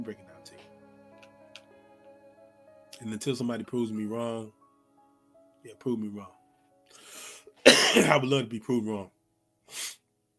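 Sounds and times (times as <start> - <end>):
speech: 0.0 - 0.6, 3.0 - 4.6, 5.6 - 6.4, 7.9 - 9.8
coughing: 7.6 - 8.3.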